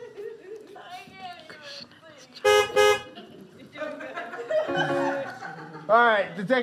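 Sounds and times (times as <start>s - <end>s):
laughter: 0.0s - 0.8s, 3.0s - 6.2s
trolley horn beeps: 2.4s - 3.1s, 4.7s - 5.3s
speech: 5.9s - 6.6s.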